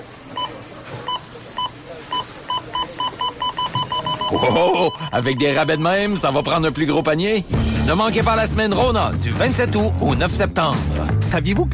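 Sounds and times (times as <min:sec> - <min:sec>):
checkout register scanner beeps: 0:01.1 - 0:07.1
speech: 0:04.3 - 0:11.7.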